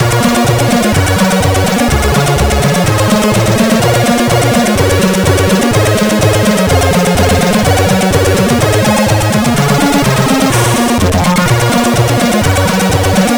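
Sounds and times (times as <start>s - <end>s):
CSG8580R5 chiptune music: 0.0s - 13.3s.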